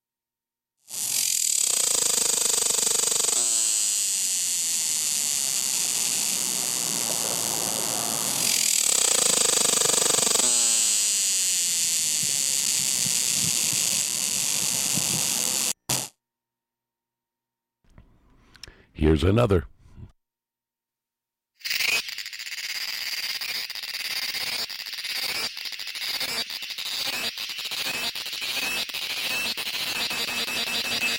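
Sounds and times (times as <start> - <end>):
cicada buzzing call: 0.9 - 16.1, 21.6 - 31.1
speech: 19.1 - 19.7.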